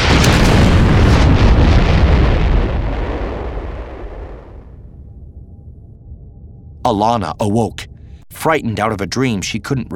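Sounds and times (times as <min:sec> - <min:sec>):
thunderous blast: 0:00.0 - 0:05.7
speech: 0:06.9 - 0:09.9.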